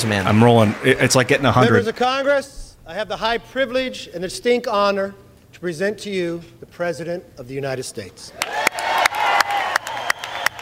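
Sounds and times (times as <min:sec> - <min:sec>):
large crowd applauding and cheering: 0:00.0 - 0:02.2, 0:08.4 - 0:10.6
speech: 0:00.0 - 0:08.6.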